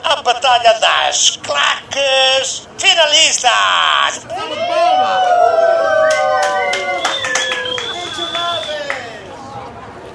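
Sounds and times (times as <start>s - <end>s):
speech: 0.3s - 6.2s
standing audience applauding: 5.9s - 9.2s.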